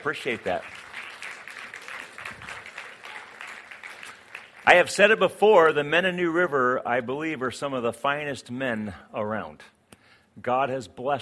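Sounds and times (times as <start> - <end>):
speech: 0.0 - 0.9, 4.7 - 9.8, 10.4 - 11.1
audience applauding: 0.0 - 5.3.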